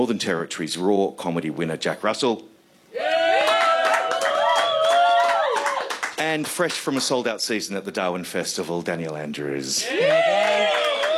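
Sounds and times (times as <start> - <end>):
speech: 0.0 - 2.5, 6.2 - 10.2
crowd cheering: 2.9 - 6.1, 9.8 - 11.1
audience applause: 3.2 - 6.8, 9.9 - 11.1.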